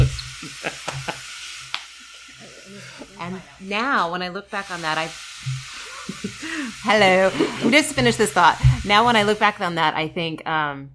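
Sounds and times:
laughter: 0:00.3 - 0:01.3, 0:05.8 - 0:08.0
speech: 0:03.2 - 0:05.6, 0:06.2 - 0:10.9
washing machine running: 0:05.4 - 0:09.6.

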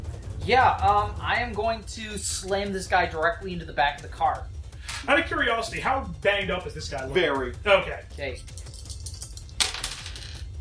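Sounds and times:
low steady hum: 0:00.0 - 0:10.5
speech: 0:00.5 - 0:08.7
dice rolling on a table: 0:08.6 - 0:10.5.

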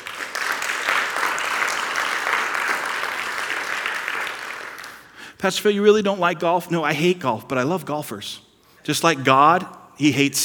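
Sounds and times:
round of applause: 0:00.0 - 0:05.2
speech: 0:05.4 - 0:10.4.

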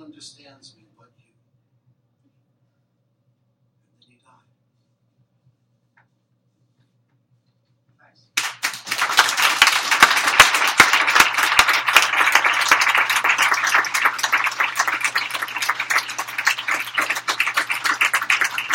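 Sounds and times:
speech: 0:00.2 - 0:00.8
audience applause: 0:08.4 - 0:18.7.

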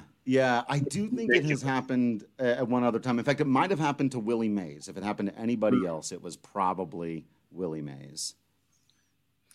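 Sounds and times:
speech: 0:00.3 - 0:08.4
phone text message notification beeps: 0:00.8 - 0:01.6
murmur of voice: 0:00.8 - 0:01.8.

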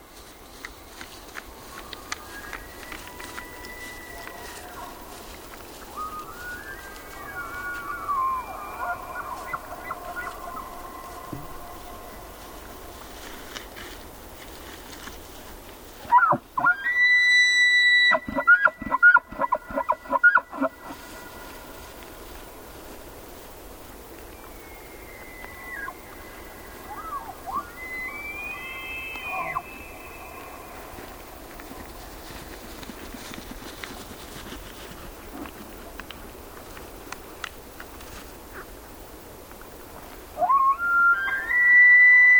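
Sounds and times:
two male elk bugling across a high meadow: 0:01.0 - 0:15.0, 0:16.0 - 0:22.6, 0:24.1 - 0:34.3, 0:40.4 - 0:42.3.

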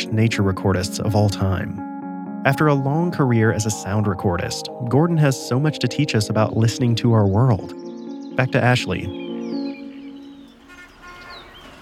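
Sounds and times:
speech: 0:00.1 - 0:09.2
birdsong: 0:03.0 - 0:11.8.

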